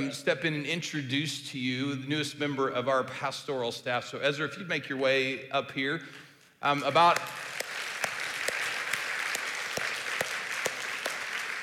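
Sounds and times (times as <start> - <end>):
speech: 0.0 - 7.6
audience applauding: 7.2 - 11.6.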